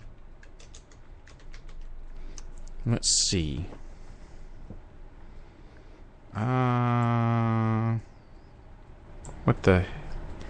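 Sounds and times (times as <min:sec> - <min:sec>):
typing on a computer keyboard: 0:00.0 - 0:01.9
speech: 0:02.8 - 0:03.8, 0:06.4 - 0:07.2, 0:09.5 - 0:10.0.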